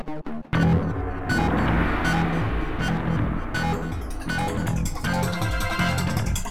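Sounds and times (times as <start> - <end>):
action music ending: 0.5 - 6.4.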